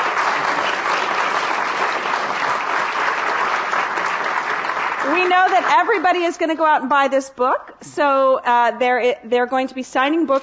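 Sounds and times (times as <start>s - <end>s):
audience applause: 0.0s - 6.3s
speech: 5.1s - 10.4s.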